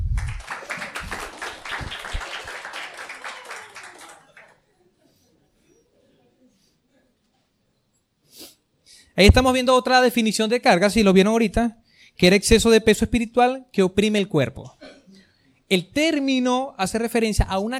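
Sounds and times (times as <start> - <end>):
audience applause: 0.0 - 4.6
laughter: 0.3 - 6.6
speech: 9.2 - 14.8, 15.7 - 17.7.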